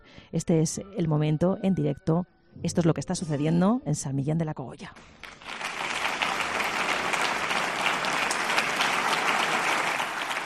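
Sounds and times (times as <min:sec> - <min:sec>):
speech: 0:00.3 - 0:05.3
audience applause in courtyard: 0:05.0 - 0:10.4.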